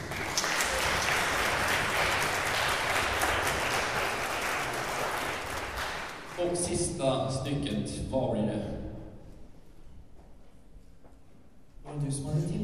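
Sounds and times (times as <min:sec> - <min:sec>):
audience applause: 0:00.0 - 0:06.6
speech: 0:06.5 - 0:08.8, 0:12.1 - 0:12.6.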